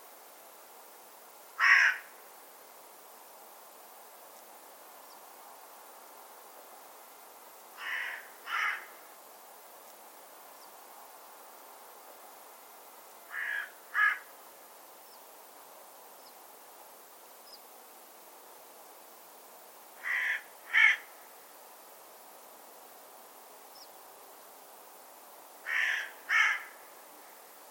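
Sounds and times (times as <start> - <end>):
bird cawing: 1.6 - 2.1, 7.8 - 9.0, 13.3 - 14.3, 20.0 - 21.1, 25.6 - 26.9.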